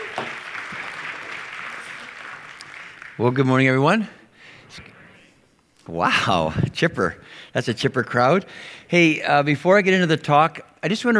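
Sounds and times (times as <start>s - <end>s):
people cheering and whooping: 0.0s - 3.2s
audience applause: 0.0s - 3.5s
speech: 3.2s - 4.9s, 5.9s - 11.1s.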